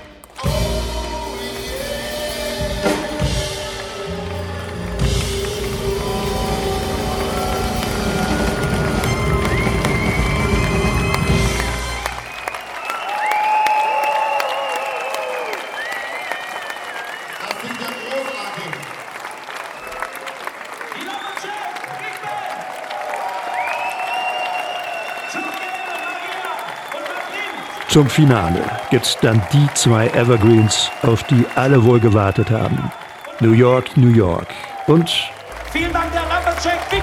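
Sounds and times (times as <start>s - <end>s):
audience applause: 0.0s - 37.0s
speech: 28.0s - 35.9s.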